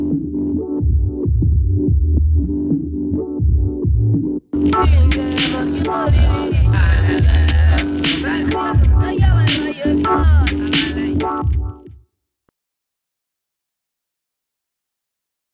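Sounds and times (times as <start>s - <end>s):
jazz-like music: 0.0s - 12.0s.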